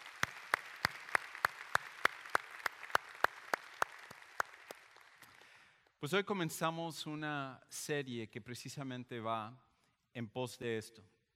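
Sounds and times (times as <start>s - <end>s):
audience applauding: 0.0s - 5.7s
speech: 6.0s - 11.1s.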